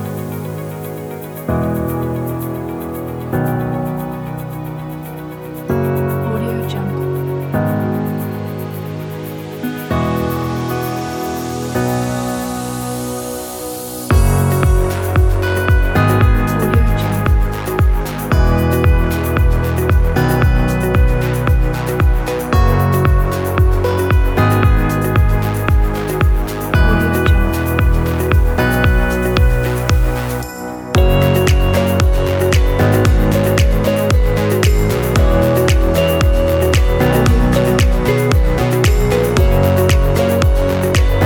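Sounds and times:
soft upbeat corporate music: 0:00.0 - 0:41.2.

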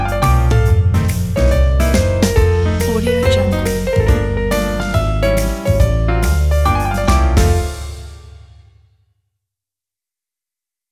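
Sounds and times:
corporate jazz swing music: 0:00.0 - 0:08.5.

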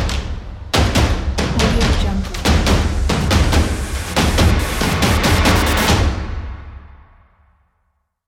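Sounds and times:
energetic rhythmic percussion: 0:00.0 - 0:06.5.

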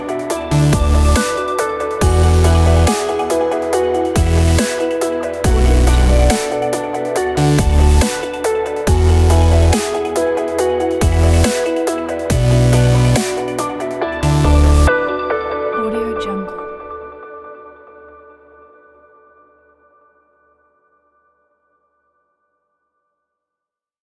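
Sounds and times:
technology background music: 0:00.0 - 0:17.0.

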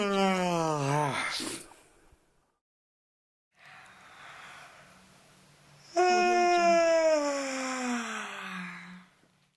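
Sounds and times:
person yawning: 0:00.0 - 0:01.6, 0:05.9 - 0:09.1.

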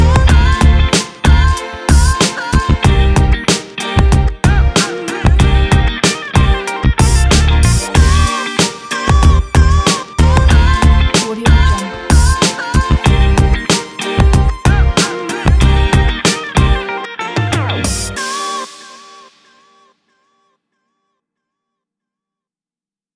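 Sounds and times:
upbeat energetic hip hop music: 0:00.0 - 0:19.8.

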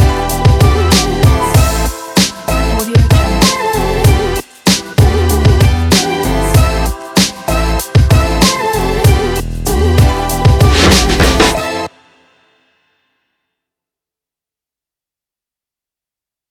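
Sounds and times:
hip hop music: 0:00.0 - 0:12.0.

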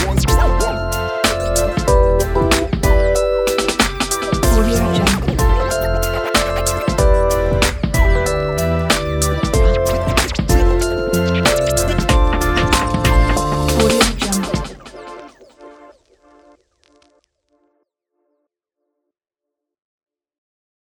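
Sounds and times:
hip hop jingle: 0:00.0 - 0:15.9.

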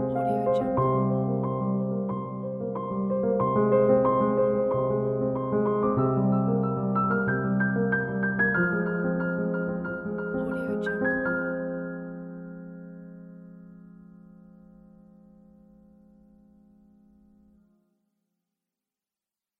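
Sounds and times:
sad classical piano: 0:00.0 - 0:17.7.

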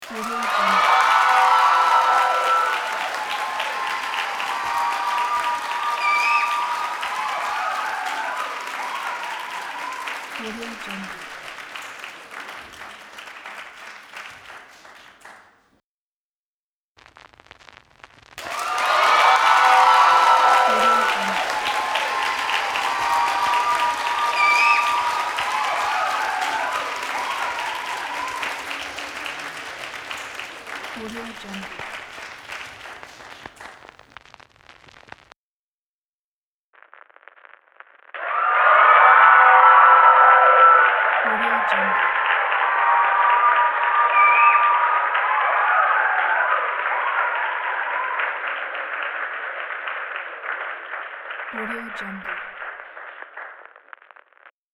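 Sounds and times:
very excited cheering: 0:00.0 - 0:15.4, 0:18.4 - 0:33.8, 0:38.2 - 0:49.3
applause: 0:00.0 - 0:15.6, 0:17.0 - 0:35.4, 0:38.1 - 0:54.5.

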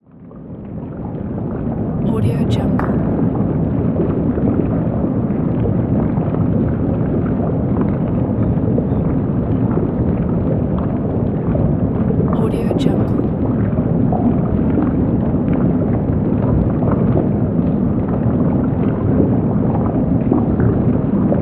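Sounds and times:
underwater ambience: 0:00.2 - 0:21.4.

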